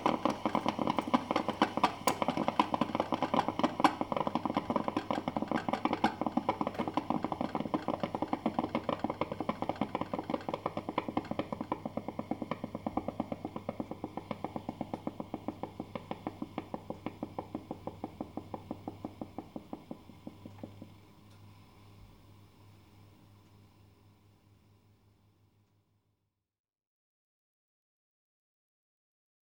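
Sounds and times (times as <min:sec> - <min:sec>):
coffee machine: 0:00.0 - 0:22.2.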